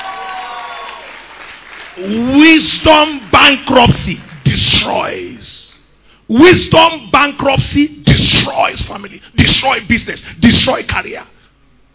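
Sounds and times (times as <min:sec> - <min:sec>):
audience clapping: 0:00.0 - 0:05.2
speech: 0:02.0 - 0:05.6, 0:06.3 - 0:11.3.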